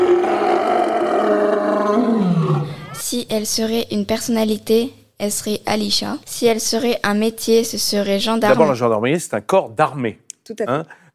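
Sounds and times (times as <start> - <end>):
lion roaring: 0.0 - 3.0
speech: 3.2 - 11.1.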